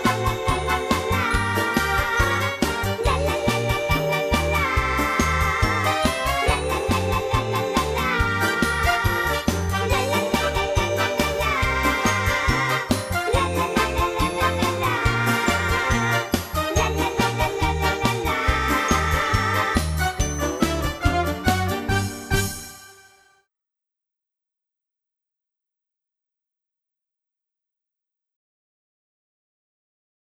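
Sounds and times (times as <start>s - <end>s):
backing track: 0.0s - 23.1s.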